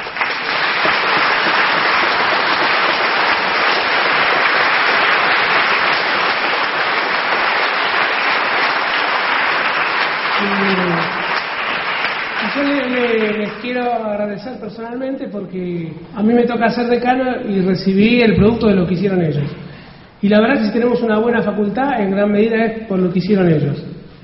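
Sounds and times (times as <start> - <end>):
audience applause: 0.0 - 13.8
speech: 12.6 - 19.6, 20.2 - 24.2.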